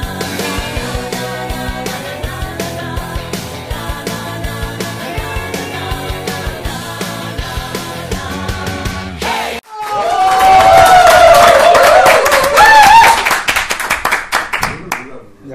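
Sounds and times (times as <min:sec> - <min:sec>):
voices cheering and shouting: 0:09.7 - 0:13.2
group clapping: 0:09.7 - 0:15.2.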